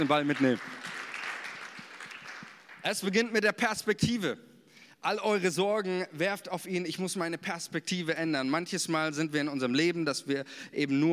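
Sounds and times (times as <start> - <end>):
speech: 0.0 - 0.8, 2.8 - 11.1
audience applause: 0.0 - 2.8.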